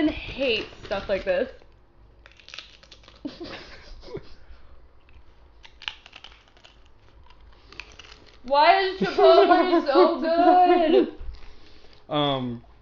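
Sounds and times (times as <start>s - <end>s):
speech: 0.0s - 1.6s, 8.4s - 11.2s, 12.1s - 12.7s
crunching a chip close to the mic: 0.5s - 3.4s, 5.0s - 8.6s
laughter: 3.3s - 4.5s, 9.0s - 11.2s.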